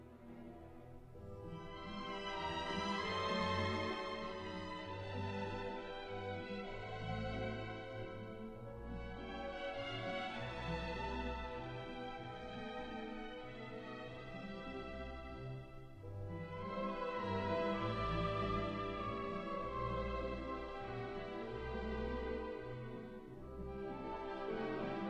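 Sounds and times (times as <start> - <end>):
folk dance piece: 0.0 - 25.0.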